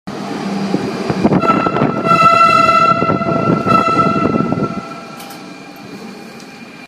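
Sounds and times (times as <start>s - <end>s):
S-tog train typhon horn in a tunnel: 1.2s - 5.8s.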